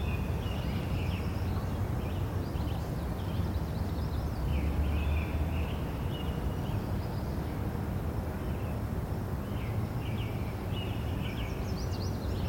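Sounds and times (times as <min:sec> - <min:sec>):
light traffic on a suburban street: 0:00.0 - 0:12.4.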